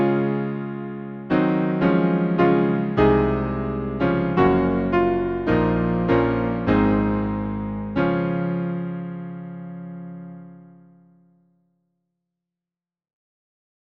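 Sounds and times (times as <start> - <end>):
hymn on piano: 0.0 - 11.1.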